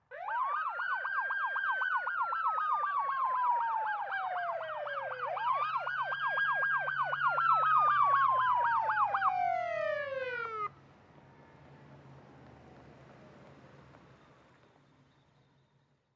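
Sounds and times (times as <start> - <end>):
ambulance siren in fast wail: 0.1 - 10.8.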